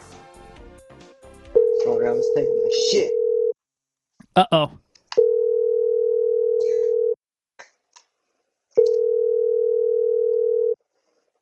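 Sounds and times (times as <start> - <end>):
speech: 1.8 - 3.2, 4.4 - 4.8
restaurant telephone dial tone: 5.2 - 7.2, 8.8 - 10.8.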